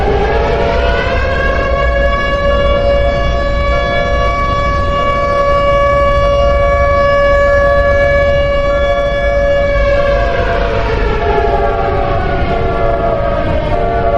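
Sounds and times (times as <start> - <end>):
EAS alarm: 0.0 - 14.1
sirens: 0.0 - 14.1.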